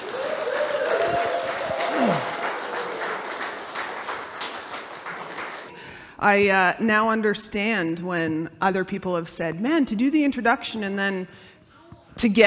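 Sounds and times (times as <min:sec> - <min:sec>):
whooping cheer: 0:00.0 - 0:04.4
crowd applauding warmly: 0:00.0 - 0:05.7
speech: 0:06.2 - 0:11.5, 0:12.2 - 0:12.4.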